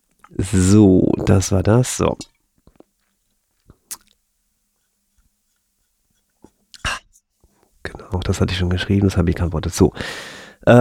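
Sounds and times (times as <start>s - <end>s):
speech: 0.3s - 2.3s, 8.3s - 10.8s
mouth clicks: 3.6s - 4.2s.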